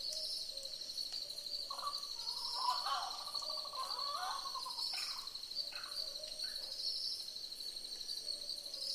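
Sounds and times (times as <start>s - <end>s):
Southern boobook owls hooting in a chorus: 1.7s - 6.2s.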